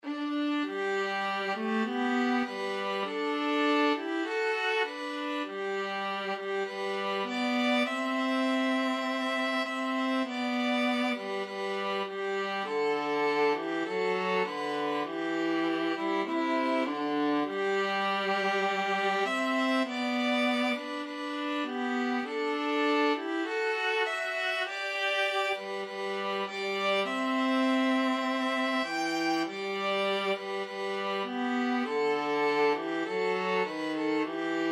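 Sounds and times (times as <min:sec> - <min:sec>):
violin and viola duet: 0:00.0 - 0:34.7.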